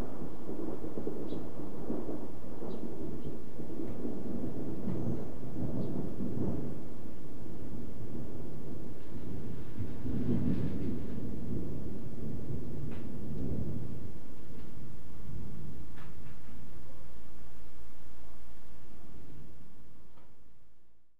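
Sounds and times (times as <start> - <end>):
thunder: 0.0 - 16.8.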